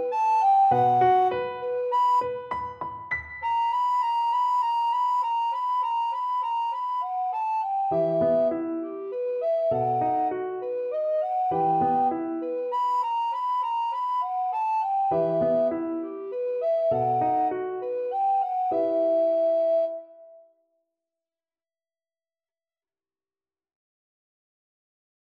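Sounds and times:
alto recorder playing a classical piece: 0:00.0 - 0:02.5, 0:03.5 - 0:20.0.

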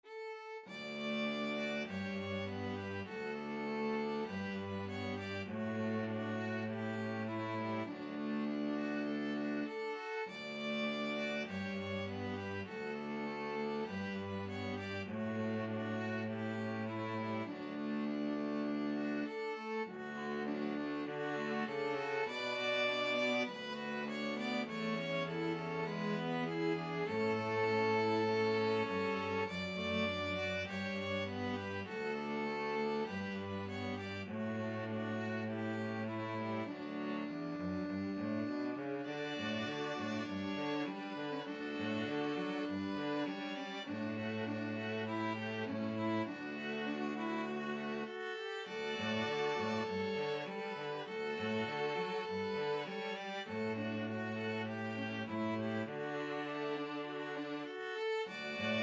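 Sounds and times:
string trio playing: 0:00.0 - 0:58.8.

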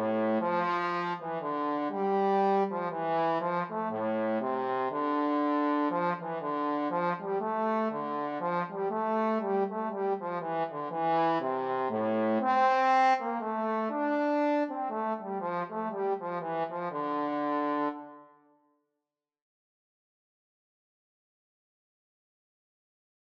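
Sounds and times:
trombone duet: 0:00.0 - 0:18.1.

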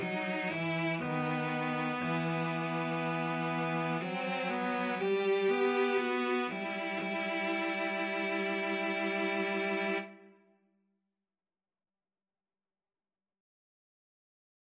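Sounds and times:
cello trio: 0:00.0 - 0:10.2.

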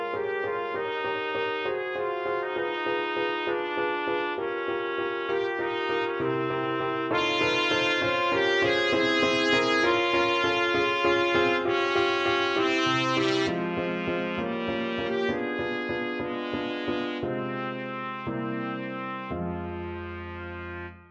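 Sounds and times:
trumpet playing a prelude: 0:00.0 - 0:21.1.

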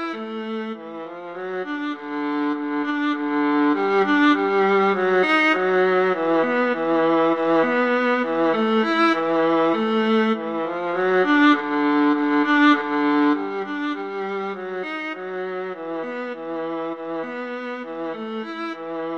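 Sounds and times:
violin and viola duet playing a rag: 0:00.0 - 0:19.1.

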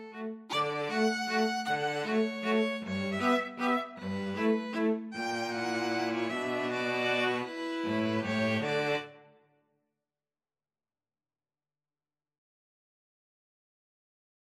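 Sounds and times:
string trio playing: 0:00.0 - 0:09.2.

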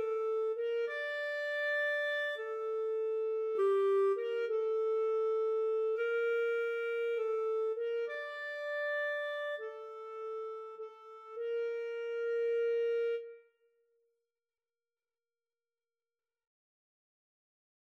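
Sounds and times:
flute and clarinet duet: 0:00.0 - 0:13.5.

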